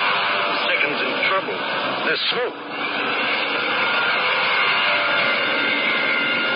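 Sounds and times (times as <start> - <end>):
Spitfire fighter planes flying in: 0.0 - 6.5
faint whining tone: 0.0 - 6.5
speech: 2.1 - 2.9.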